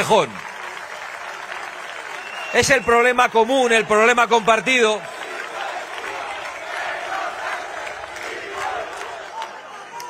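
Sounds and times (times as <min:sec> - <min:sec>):
speech: 0:00.0 - 0:00.4, 0:02.5 - 0:05.2
large crowd shouting and chanting in indignation: 0:02.5 - 0:10.0.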